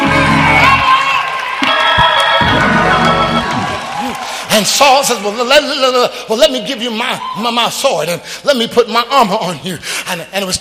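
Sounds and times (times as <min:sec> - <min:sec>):
audience cheering and shouting praise: 0:00.0 - 0:06.0
speech: 0:04.6 - 0:10.6.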